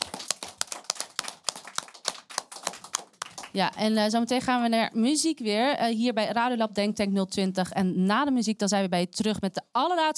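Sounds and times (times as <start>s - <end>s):
audience applause: 0.0s - 3.6s
speech: 3.6s - 10.1s.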